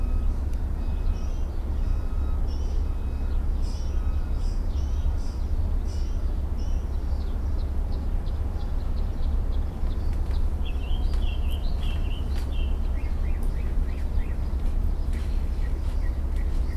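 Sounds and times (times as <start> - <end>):
low background roar: 0.0 - 16.7
mockingbird singing: 0.2 - 16.7.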